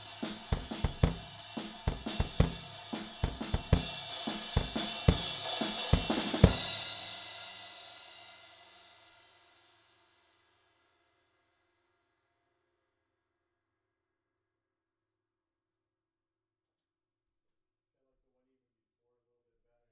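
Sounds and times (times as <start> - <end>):
drums recorded with AKG414 microphone: 0.0 - 9.7.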